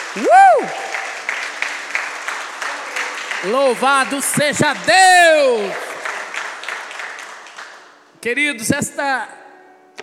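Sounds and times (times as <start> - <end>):
audience applause: 0.0 - 7.8
speech: 0.2 - 0.8, 3.4 - 5.9, 8.2 - 9.4.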